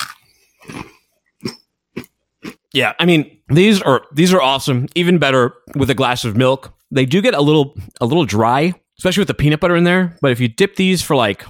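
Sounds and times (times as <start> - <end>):
person crunching a crunchy oatmeal cookie: 0.0 - 2.6
speech: 2.8 - 11.4.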